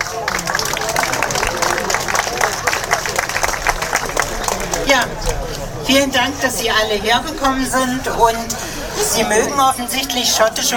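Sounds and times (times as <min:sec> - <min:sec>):
audience applause: 0:00.0 - 0:05.8
crowd murmur: 0:00.0 - 0:10.7
speech: 0:05.0 - 0:10.7.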